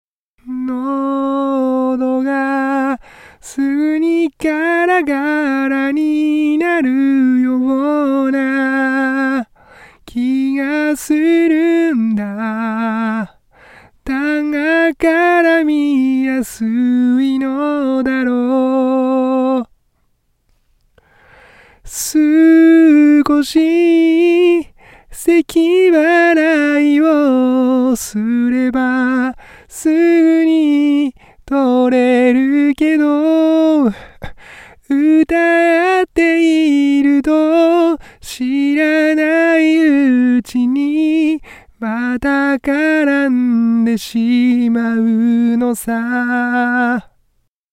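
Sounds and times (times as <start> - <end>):
vocals: 0.4 - 47.5.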